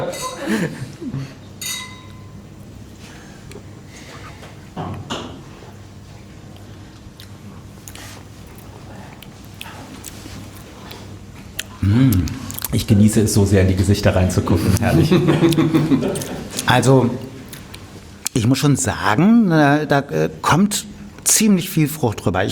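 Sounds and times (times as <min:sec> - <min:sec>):
laughter: 0:00.0 - 0:01.4, 0:14.5 - 0:16.7
speech: 0:00.1 - 0:01.4, 0:12.8 - 0:17.3, 0:18.4 - 0:22.5
wine glasses clinking in a toast at a wine tasting: 0:01.6 - 0:02.4.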